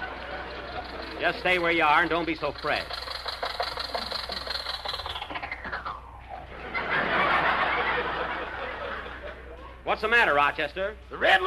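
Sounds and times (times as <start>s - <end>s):
old car engine idling then shutting off: 0.0s - 5.6s
speech: 1.2s - 3.0s, 10.0s - 11.4s
laughter: 6.5s - 9.8s.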